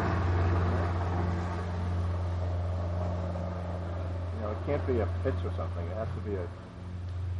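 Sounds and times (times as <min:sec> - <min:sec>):
helicopter engine roar overhead: 0:00.0 - 0:07.3
speech: 0:04.7 - 0:06.7.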